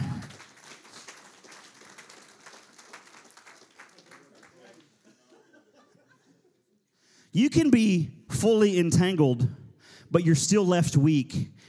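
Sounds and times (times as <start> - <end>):
laughter: 0.0 - 0.3, 4.6 - 6.7
audience applause: 0.0 - 5.0
speech: 7.4 - 11.6.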